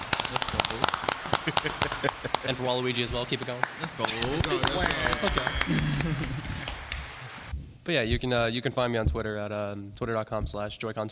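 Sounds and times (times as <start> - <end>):
applause sound effect from a button: 0.0 - 7.5
speech: 0.7 - 6.7, 7.9 - 11.1
laughter: 0.7 - 7.0.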